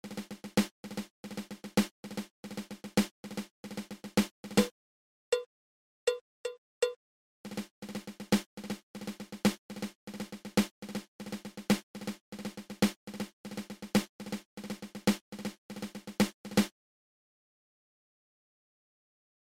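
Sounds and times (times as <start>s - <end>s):
double ratamacue snare drum rudiment: 0.0s - 4.7s, 7.5s - 16.7s.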